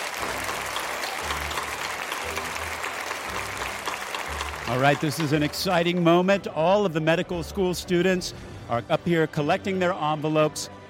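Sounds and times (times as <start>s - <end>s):
round of applause: 0.0s - 6.3s
speech: 4.7s - 10.8s.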